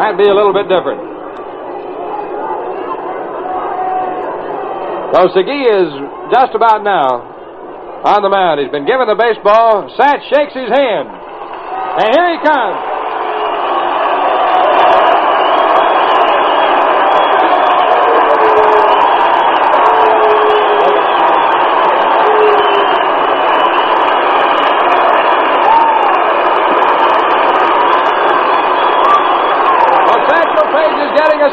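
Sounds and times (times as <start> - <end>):
stadium crowd cheering and applauding in a standing ovation: 0.0 - 31.5
speech: 0.1 - 1.1, 5.1 - 7.3, 8.0 - 11.2, 12.0 - 12.9
whistles: 15.3 - 26.2, 28.0 - 30.0.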